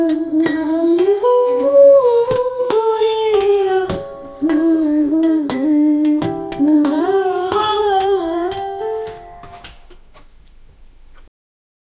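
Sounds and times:
funny Russian world music: 0.0 - 10.1.

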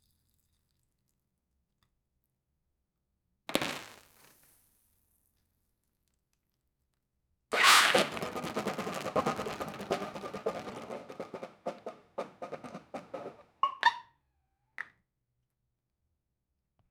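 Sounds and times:
explosive diarrhea splattering into a bucket: 7.6 - 13.4.

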